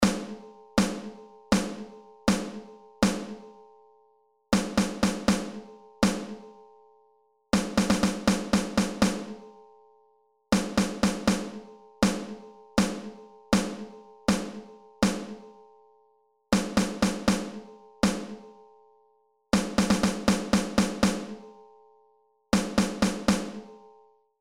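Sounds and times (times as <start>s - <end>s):
snare drum rhythms: 0.0s - 3.4s, 4.6s - 6.4s, 7.6s - 9.4s, 10.6s - 15.4s, 16.6s - 18.4s, 19.6s - 21.4s, 22.6s - 23.7s.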